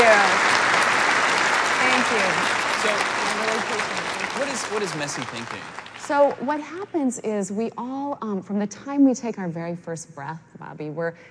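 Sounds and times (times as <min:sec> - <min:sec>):
audience applause welcoming a guest: 0:00.0 - 0:06.6
speech: 0:04.7 - 0:11.3.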